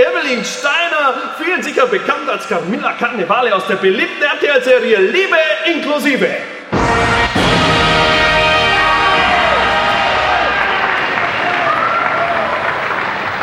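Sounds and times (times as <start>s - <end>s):
speech: 0.0s - 7.2s
audience applause: 7.4s - 13.4s.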